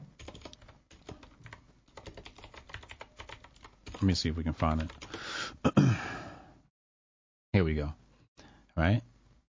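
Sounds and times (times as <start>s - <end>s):
typing on a computer keyboard: 0.2s - 5.2s
speech: 4.0s - 5.0s, 8.8s - 9.0s.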